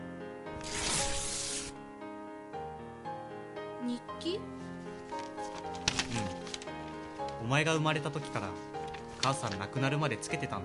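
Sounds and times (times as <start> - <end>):
large paper envelope being opened: 0.6 - 1.8, 5.0 - 9.8
speech: 3.9 - 4.6, 7.4 - 10.6.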